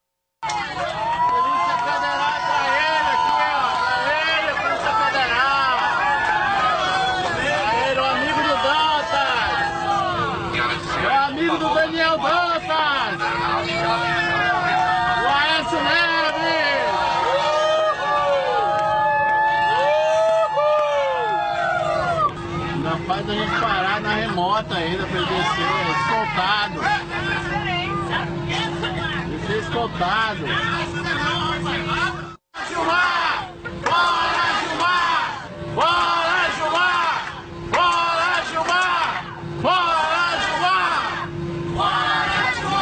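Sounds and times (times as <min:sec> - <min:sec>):
crowd booing and jeering: 0:00.4 - 0:11.2, 0:12.5 - 0:23.9, 0:32.6 - 0:42.8
steady low hum: 0:00.4 - 0:42.8.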